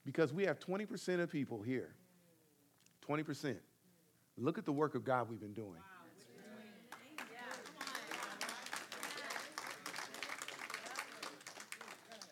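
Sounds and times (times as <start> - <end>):
speech: 0.0 - 2.0, 3.1 - 3.7, 4.4 - 5.9
audience applause in church: 6.9 - 12.2.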